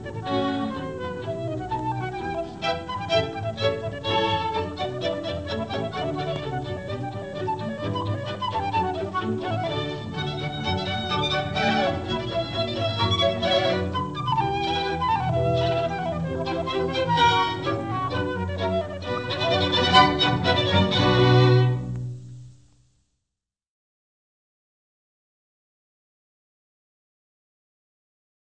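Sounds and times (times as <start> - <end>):
orchestral baroque suite: 0.0 - 22.4.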